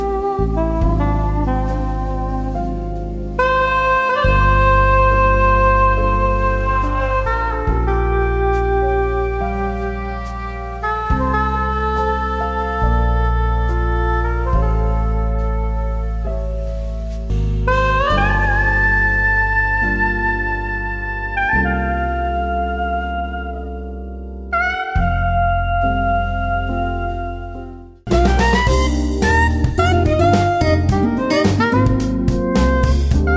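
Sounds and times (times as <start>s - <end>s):
soprano saxophone: 0.0s - 33.3s.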